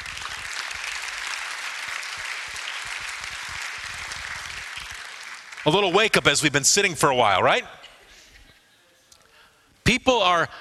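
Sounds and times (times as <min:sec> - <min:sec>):
crowd clapping: 0:00.0 - 0:07.0
speech: 0:05.6 - 0:07.9, 0:09.9 - 0:10.5.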